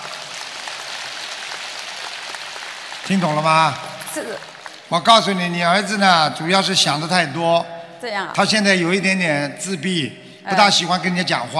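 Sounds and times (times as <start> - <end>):
audience applause: 0.0 - 5.9
speech: 3.1 - 11.5.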